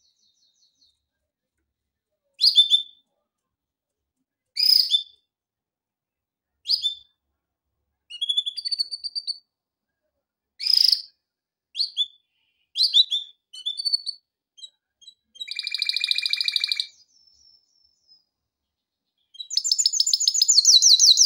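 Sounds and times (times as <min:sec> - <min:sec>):
canary chirps: 0:00.0 - 0:01.1, 0:02.4 - 0:03.2, 0:04.5 - 0:05.3, 0:06.6 - 0:07.2, 0:08.1 - 0:09.6, 0:10.6 - 0:21.2.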